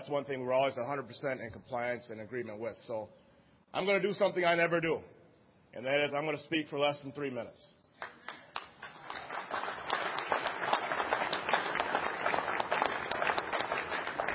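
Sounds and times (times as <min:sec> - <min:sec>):
speech: 0:00.1 - 0:08.1
audience clapping: 0:08.0 - 0:14.3.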